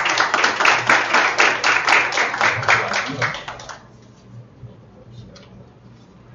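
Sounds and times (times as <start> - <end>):
audience applause: 0.0 - 3.9.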